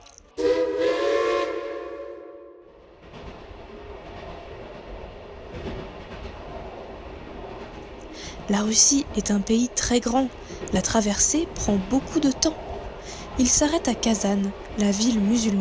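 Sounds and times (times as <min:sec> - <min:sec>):
train horn blast: 0:00.4 - 0:03.1
speech: 0:08.5 - 0:12.6, 0:13.4 - 0:15.6.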